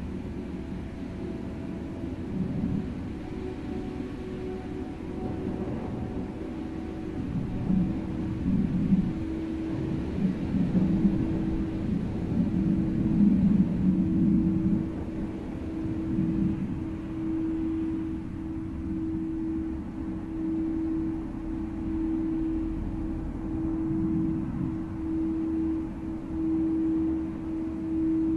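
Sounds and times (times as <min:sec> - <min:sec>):
Tibetan bowl humming: 0:00.0 - 0:28.3
light to moderate wind blowing: 0:00.0 - 0:28.3.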